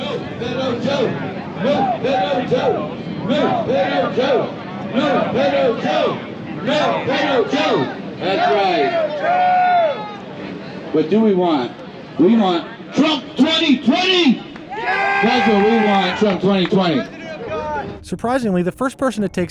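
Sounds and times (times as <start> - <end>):
rally crowd chanting: 0.0 - 9.0
speech: 0.7 - 9.7, 10.9 - 17.2, 18.0 - 19.4.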